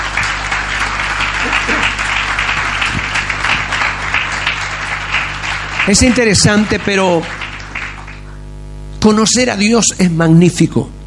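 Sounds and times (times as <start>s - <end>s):
audience applause: 0.0s - 8.5s
speech: 5.9s - 7.4s, 9.0s - 11.0s.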